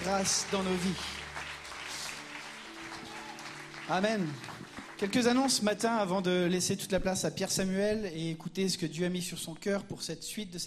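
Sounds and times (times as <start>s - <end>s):
audience clapping in acclamation: 0.0s - 6.1s
speech: 0.1s - 1.3s, 3.9s - 10.6s.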